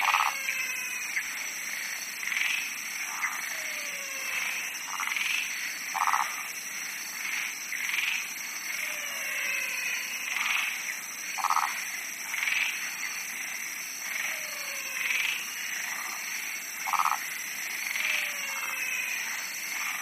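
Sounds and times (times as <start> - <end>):
frogs bleating in a pond: 0.0 - 20.0.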